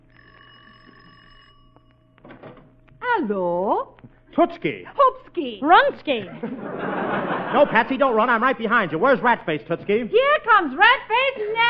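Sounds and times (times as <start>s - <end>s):
bell ringing: 0.0s - 2.2s
speech: 3.2s - 11.6s
laughter: 6.1s - 9.0s.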